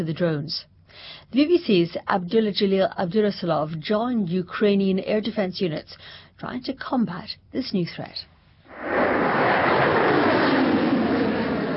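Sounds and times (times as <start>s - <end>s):
speech: 0.0s - 8.9s
missile launching into the sky: 8.7s - 11.7s.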